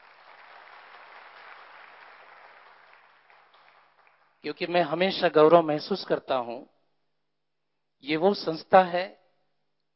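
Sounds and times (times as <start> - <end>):
audience applauding loudly at an event for a large spiritual organisation: 0.0 - 4.5
speech: 4.4 - 6.7, 8.0 - 9.2.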